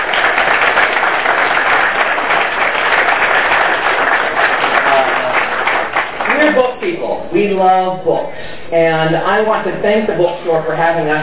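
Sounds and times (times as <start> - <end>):
audience applause: 0.0 - 6.6
speech: 7.3 - 11.2.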